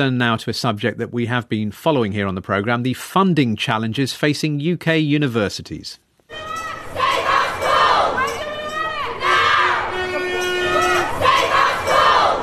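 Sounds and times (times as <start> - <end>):
speech: 0.0 - 6.5
crowd chanting at a protest at the Senedd in Wales over Cardiff University job cuts: 6.3 - 12.4.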